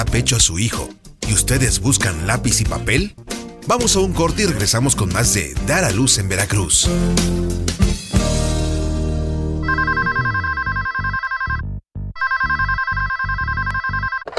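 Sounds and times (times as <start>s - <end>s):
speech: 0.0s - 8.0s
music: 0.0s - 10.8s
electronic telephone ringing: 9.6s - 14.3s.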